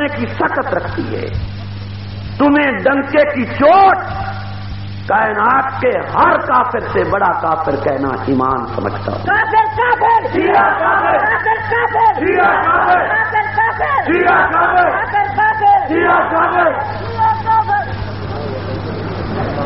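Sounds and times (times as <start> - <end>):
steady low hum: 0.0 - 19.6
speech: 0.1 - 1.6, 2.3 - 4.3, 5.1 - 17.6
large crowd chanting slogans in unison: 10.3 - 17.0.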